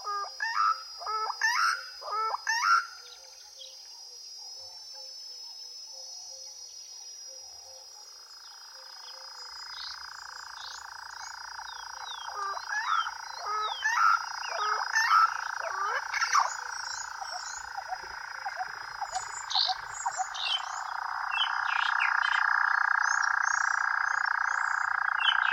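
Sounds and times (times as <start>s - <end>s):
desert weather and wildlife ambience: 0.0s - 25.5s.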